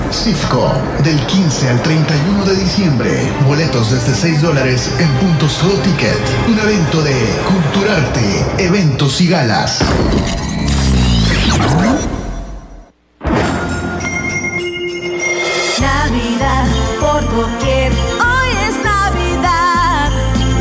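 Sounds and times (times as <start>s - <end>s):
speech: 0.2s - 10.4s, 11.6s - 12.2s, 17.1s - 18.2s
Christmas bells ringing: 13.5s - 20.5s.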